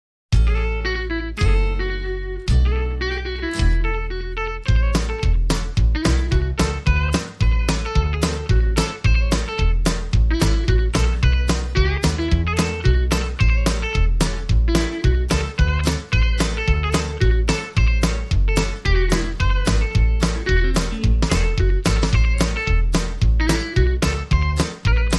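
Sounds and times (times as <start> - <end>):
country swing music: 0.4 - 25.1.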